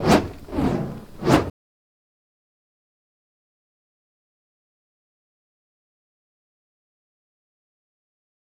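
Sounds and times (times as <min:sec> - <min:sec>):
fire staff fire sound effects: 0:00.0 - 0:01.5.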